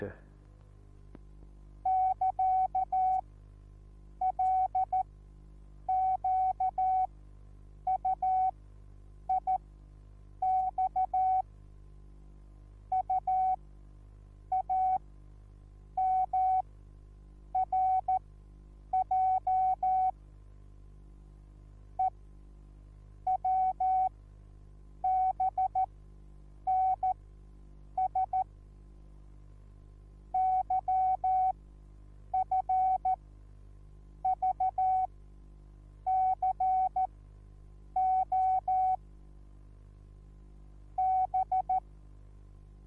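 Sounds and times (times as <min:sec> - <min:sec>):
morse code beeps: 0:01.9 - 0:03.2, 0:04.2 - 0:05.1, 0:05.9 - 0:07.1, 0:07.9 - 0:08.5, 0:10.4 - 0:11.4, 0:12.9 - 0:13.6, 0:14.5 - 0:15.0, 0:16.0 - 0:16.6, 0:17.5 - 0:18.2, 0:18.9 - 0:20.1, 0:23.3 - 0:24.1, 0:25.1 - 0:25.9, 0:26.7 - 0:27.1, 0:28.0 - 0:28.5, 0:30.3 - 0:31.5, 0:32.3 - 0:33.2, 0:34.3 - 0:35.1, 0:36.1 - 0:37.1, 0:38.0 - 0:39.0, 0:41.0 - 0:41.8.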